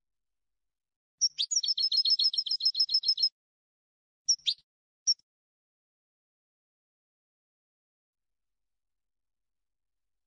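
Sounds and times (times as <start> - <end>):
European goldfinch singing: 1.2 - 3.3, 4.3 - 4.6.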